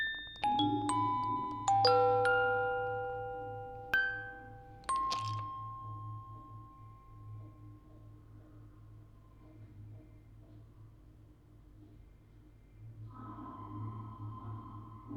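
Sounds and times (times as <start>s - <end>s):
quartet of music boxes playing: 0.0s - 7.6s.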